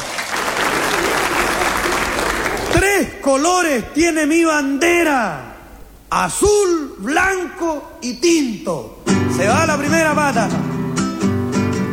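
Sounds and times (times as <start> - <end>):
audience applauding a performer: 0.0 - 2.8
speech: 2.8 - 5.5, 6.1 - 10.8.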